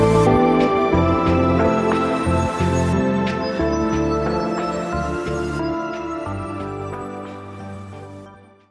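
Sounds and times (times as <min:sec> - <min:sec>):
electronic romantic music: 0:00.0 - 0:08.6.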